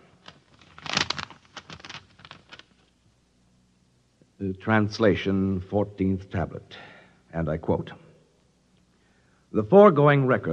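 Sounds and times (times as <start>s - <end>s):
paper rustling and crackling: 0.0s - 2.9s
paper envelope being torn open: 0.2s - 2.8s
speech: 4.4s - 8.0s, 9.5s - 10.5s.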